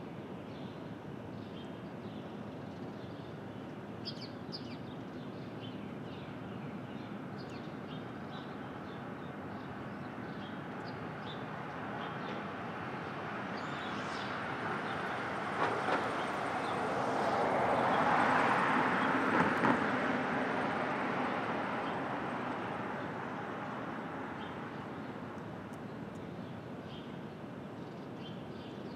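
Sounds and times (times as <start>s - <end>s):
traffic and rail rumble in Brooklyn at dawn: 0.2s - 28.9s
passing train or vehicle: 8.4s - 25.7s.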